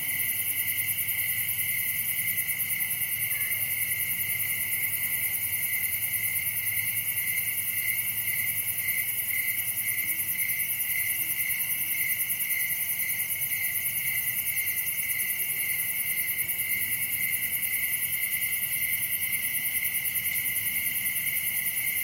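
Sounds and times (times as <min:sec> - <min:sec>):
crickets chorus: 0:00.0 - 0:22.0.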